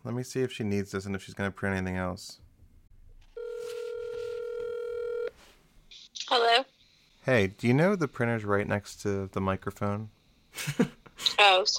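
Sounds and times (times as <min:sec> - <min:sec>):
faint noise: 0:00.0 - 0:11.7
speech: 0:00.1 - 0:02.4, 0:06.3 - 0:11.7
FaceTime video call ringing tone: 0:03.4 - 0:05.3.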